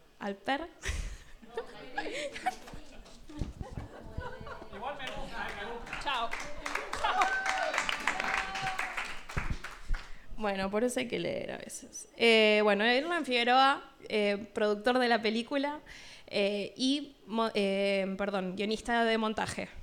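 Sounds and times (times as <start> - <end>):
speech: 0.2 - 0.9, 10.4 - 19.8
murmured chatter: 1.4 - 8.7
audience applause: 2.1 - 10.2
scattered laughter: 3.4 - 5.3.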